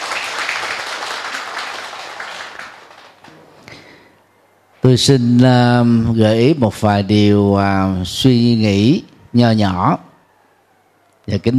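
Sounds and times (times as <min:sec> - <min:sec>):
audience applause: 0:00.0 - 0:03.5
speech: 0:04.8 - 0:10.1, 0:11.3 - 0:11.5.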